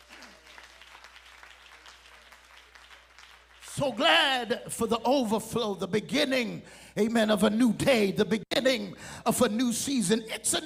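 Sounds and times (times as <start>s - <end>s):
people clapping: 0.0s - 4.7s
speech: 3.8s - 10.6s.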